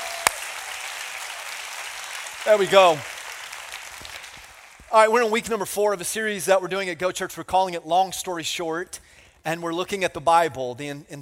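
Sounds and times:
church audience applauding loudly: 0.0s - 5.2s
speech: 2.4s - 3.1s, 4.9s - 11.1s.

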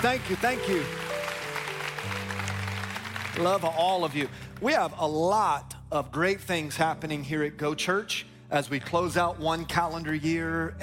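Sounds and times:
speech: 0.0s - 1.0s, 3.4s - 10.8s
audience applauding: 0.0s - 4.6s.

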